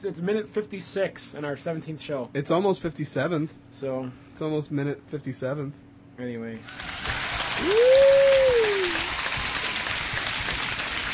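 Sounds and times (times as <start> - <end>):
speech: 0.0 - 7.0, 7.6 - 8.2
recorded crowd applause effect: 6.6 - 11.1.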